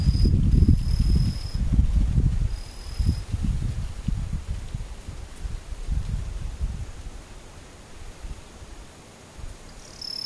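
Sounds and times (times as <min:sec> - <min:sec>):
daytime insects whining: 0:00.0 - 0:01.7, 0:02.5 - 0:03.3, 0:09.6 - 0:10.2
low rumbling gusts: 0:00.0 - 0:09.6.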